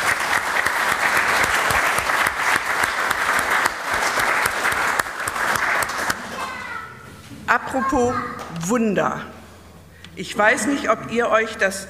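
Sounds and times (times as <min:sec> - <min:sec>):
audience applause: 0:00.0 - 0:06.6
speech: 0:07.7 - 0:09.3, 0:10.2 - 0:11.8.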